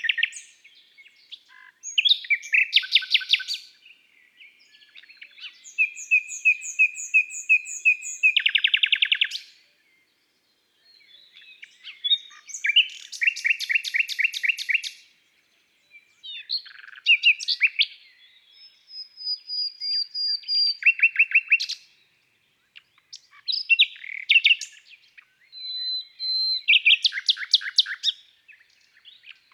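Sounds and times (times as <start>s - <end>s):
Common nightingale song: 0.0s - 29.5s.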